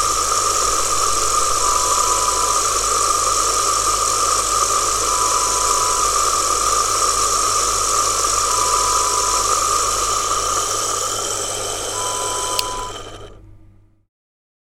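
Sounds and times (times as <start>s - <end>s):
vortexer whirring: 0.0s - 13.6s.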